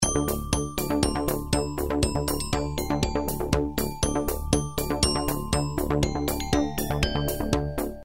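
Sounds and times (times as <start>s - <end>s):
inspiring ringtone: 0.0s - 8.0s.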